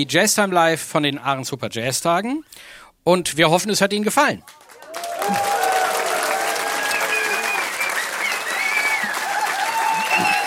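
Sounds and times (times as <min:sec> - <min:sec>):
speech: 0:00.0 - 0:05.5
audience applause: 0:04.4 - 0:10.4.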